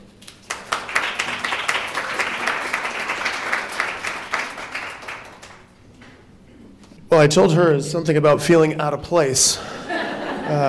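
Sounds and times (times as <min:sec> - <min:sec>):
audience applause at Cape Bible Chapel welcoming a married couple: 0:00.4 - 0:05.7
speech: 0:07.2 - 0:09.8, 0:10.5 - 0:10.6
laughter: 0:09.6 - 0:10.6.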